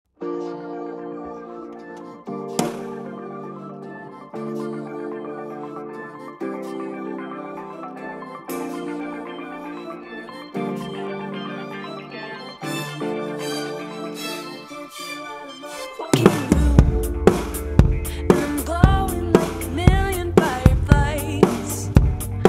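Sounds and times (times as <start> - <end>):
drums playing: 2.6 - 3.0, 16.2 - 22.4.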